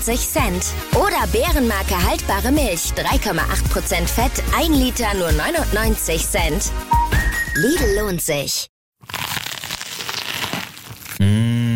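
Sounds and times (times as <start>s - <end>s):
speech: 0.0s - 9.2s
biting into crunchy food: 9.0s - 11.3s.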